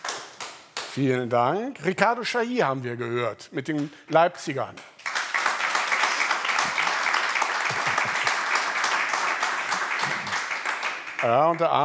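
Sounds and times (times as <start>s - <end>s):
speech: 1.0s - 4.9s, 11.2s - 11.8s
audience applause voting for a recording in a listening contest: 5.0s - 11.8s.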